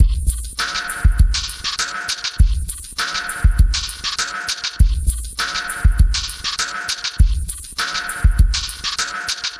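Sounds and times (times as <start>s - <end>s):
hip-hop drum loop: 0.0s - 9.5s.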